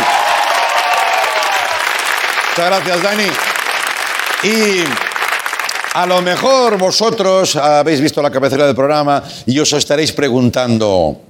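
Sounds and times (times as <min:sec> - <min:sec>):
studio audience applause: 0:00.0 - 0:07.2
speech: 0:02.6 - 0:03.5, 0:04.4 - 0:05.1, 0:06.0 - 0:11.2.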